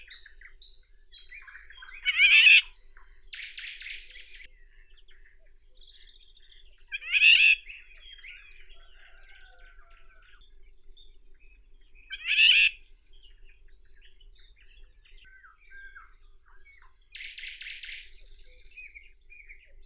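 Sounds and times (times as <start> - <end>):
Eurasian golden oriole Oriolus oriolus calling: 2.0 - 2.8, 6.9 - 7.7, 12.1 - 12.8.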